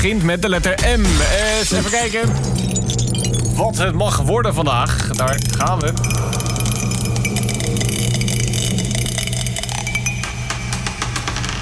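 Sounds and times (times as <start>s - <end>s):
speech: 0.0s - 3.0s, 3.6s - 6.3s
die spinning and rolling: 5.0s - 11.5s.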